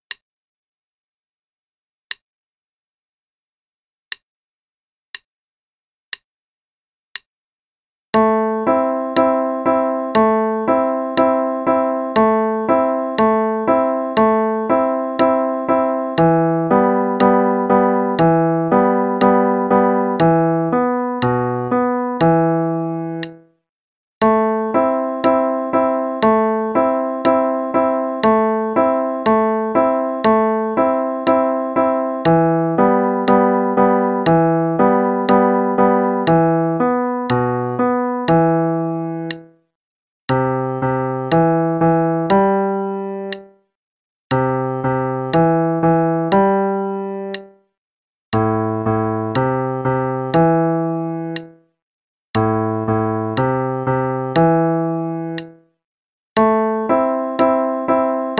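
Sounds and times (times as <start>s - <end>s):
piano left hand play-along: 8.1s - 23.4s, 24.2s - 39.5s, 40.3s - 43.6s, 44.3s - 47.6s, 48.3s - 51.6s, 52.4s - 55.6s, 56.4s - 58.3s.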